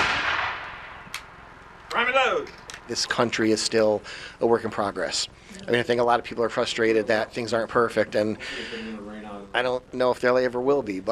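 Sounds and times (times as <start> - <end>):
musket volley fired on command at a historical reenactment: 0.0 - 1.3
sharp gunshot crack: 0.0 - 1.5
speech: 2.0 - 11.0.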